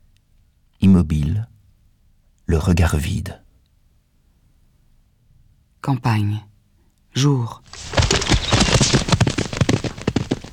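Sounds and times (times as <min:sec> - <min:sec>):
speech: 0:00.9 - 0:01.5, 0:02.5 - 0:03.4, 0:05.8 - 0:06.5, 0:07.2 - 0:08.0
riderless horse galloping away in the countryside: 0:07.7 - 0:10.5.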